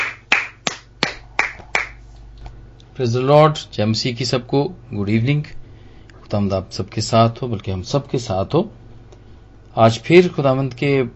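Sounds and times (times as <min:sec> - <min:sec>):
hand claps welcoming a preacher at a church gathering: 0:00.0 - 0:02.0
speech: 0:03.0 - 0:05.6, 0:06.3 - 0:08.8, 0:09.8 - 0:11.1.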